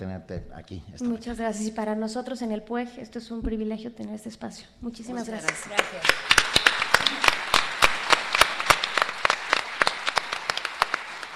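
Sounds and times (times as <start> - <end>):
speech: 0.0 - 6.5
applause: 5.4 - 11.3.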